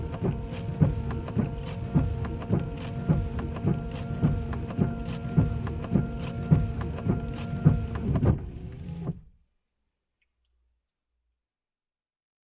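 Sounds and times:
windshield wipers in car interior: 0:00.0 - 0:09.2.

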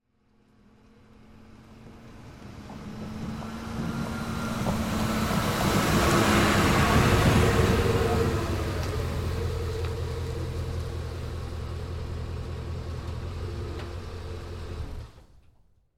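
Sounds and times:
Ford F150 truck pulling up and shutting off: 0:00.1 - 0:15.8.

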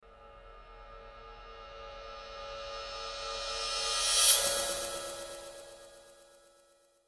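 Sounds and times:
horror reverse cymbal swell with delay: 0:01.2 - 0:06.6.

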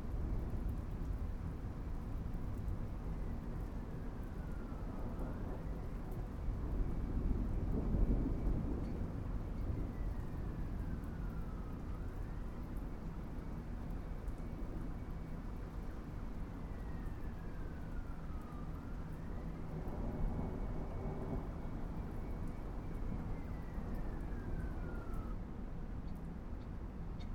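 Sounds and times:
city background noise: 0:00.0 - 0:27.3
thunderstorm: 0:00.1 - 0:12.6, 0:17.0 - 0:25.4
city sirens: 0:00.1 - 0:27.3.

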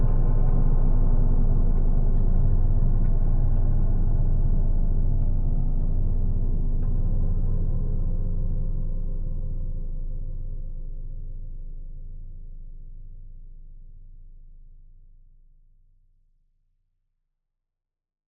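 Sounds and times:
evil drone with reverb: 0:00.0 - 0:12.0.

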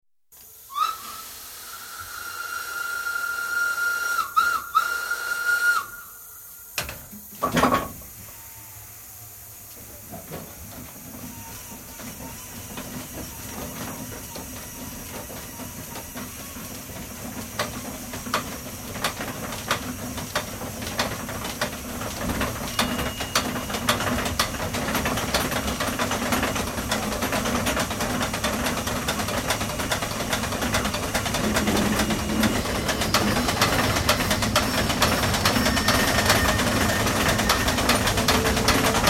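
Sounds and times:
steam crane starting and running: 0:00.4 - 0:39.0
steam crane whistle blowing: 0:00.7 - 0:06.6, 0:22.7 - 0:23.7, 0:31.9 - 0:38.8.

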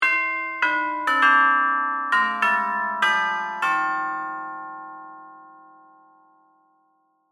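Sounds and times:
door bell chime: 0:00.0 - 0:07.2.

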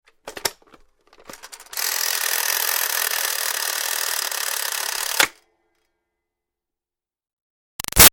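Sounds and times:
toy toaster countdown timer ticking: 0:01.7 - 0:05.3.

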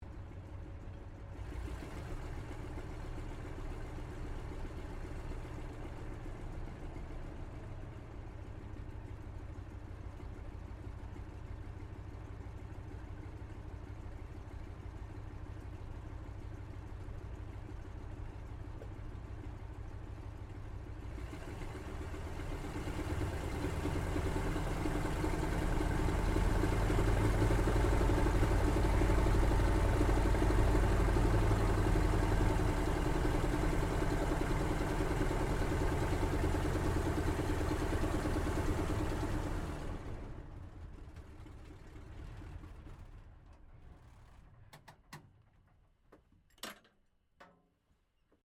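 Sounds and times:
CAC Wirraway aircraft engine shutting down heard from interior: 0:21.2 - 0:45.1.

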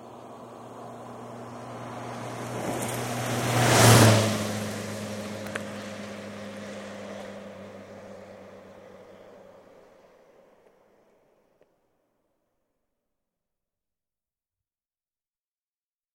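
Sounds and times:
Ford Fiesta hatchback passing fast right to left: 0:00.0 - 0:11.1.

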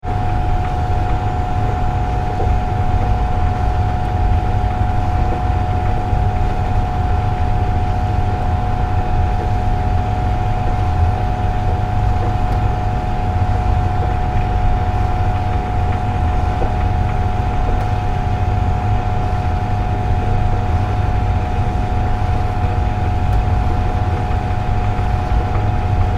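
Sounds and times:
domestic central heating boiler pump running: 0:00.0 - 0:26.1.

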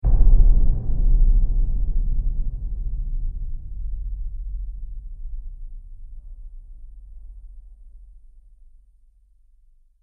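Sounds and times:
trailer drum hit: 0:00.0 - 0:07.3.

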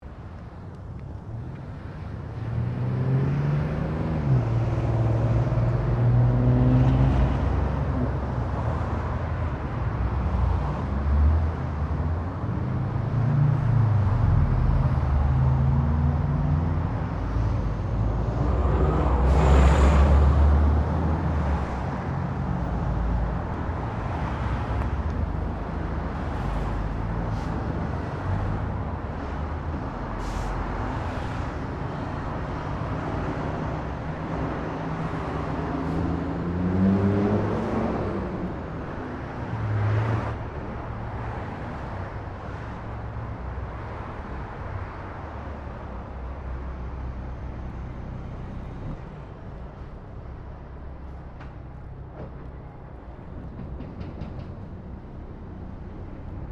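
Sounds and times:
traffic cars passing by: 0:00.0 - 0:56.4.

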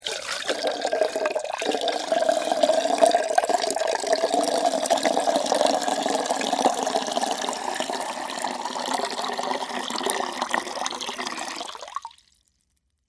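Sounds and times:
water pouring into small antique metal pot: 0:00.0 - 0:12.4.

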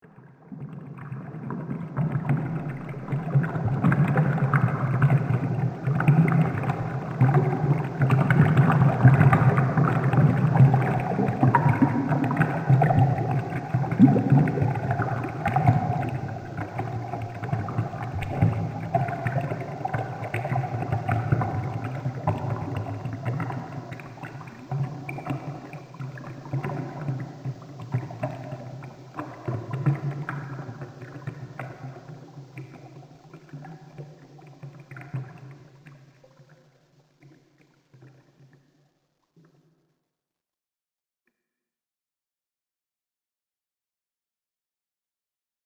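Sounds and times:
fountain in a dungeon: 0:00.1 - 0:36.2.

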